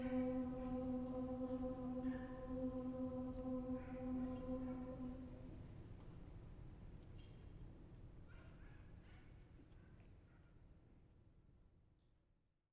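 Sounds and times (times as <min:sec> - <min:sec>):
choir singing a Ukrainian alleluia: 0:00.0 - 0:05.7.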